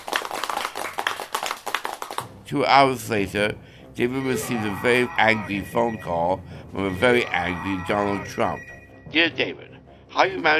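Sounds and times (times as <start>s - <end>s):
people clapping as a story sound effect: 0.0s - 2.3s
speech: 2.5s - 10.5s.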